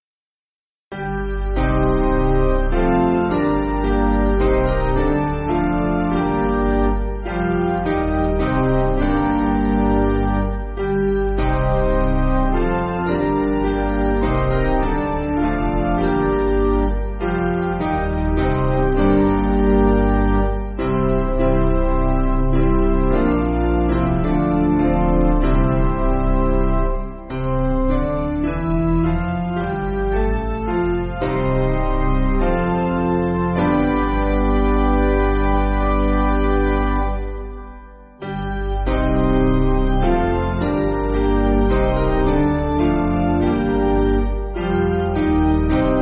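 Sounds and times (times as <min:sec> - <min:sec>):
sad piano: 0:00.9 - 0:45.9.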